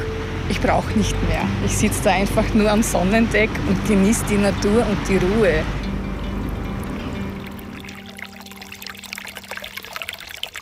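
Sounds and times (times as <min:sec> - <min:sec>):
low rumbling undertone: 0:00.0 - 0:08.9
speech: 0:00.6 - 0:05.8
babbling brook water: 0:04.2 - 0:10.5.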